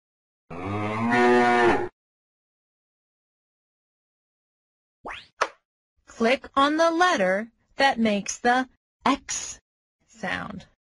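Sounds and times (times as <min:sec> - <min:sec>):
ox mooing: 0:00.5 - 0:01.9
speech: 0:06.2 - 0:09.6, 0:10.2 - 0:10.7.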